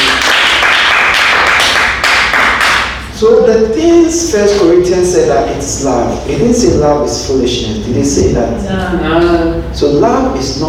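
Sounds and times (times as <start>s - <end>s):
audience clapping: 0.0s - 3.0s
speech: 3.2s - 10.6s.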